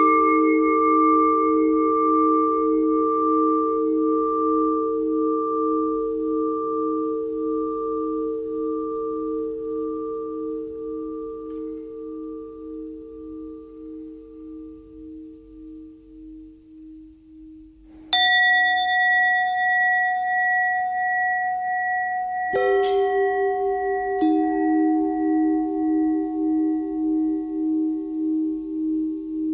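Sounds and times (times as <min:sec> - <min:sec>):
long bell thread noise: 0:00.0 - 0:14.0, 0:18.1 - 0:28.7.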